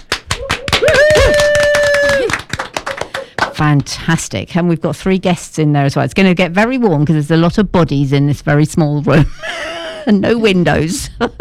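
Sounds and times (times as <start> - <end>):
studio audience applause: 0.0 - 3.9
speech: 3.6 - 11.4.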